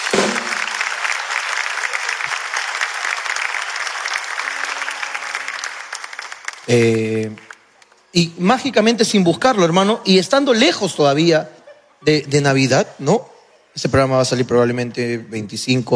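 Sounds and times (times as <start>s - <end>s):
audience applause: 0.0s - 7.7s
speech: 6.7s - 7.5s, 8.1s - 15.9s.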